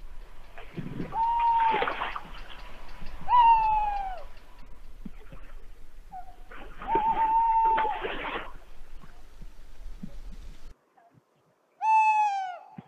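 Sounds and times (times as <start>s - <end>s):
tawny owl calling: 0.9s - 4.6s, 6.1s - 8.1s, 11.8s - 12.8s.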